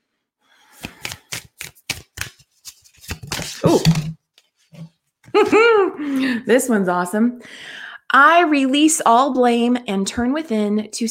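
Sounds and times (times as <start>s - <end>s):
oracle deck cards snapping and flicking as a card is drawn: 0.7s - 4.1s
speech: 5.4s - 11.0s.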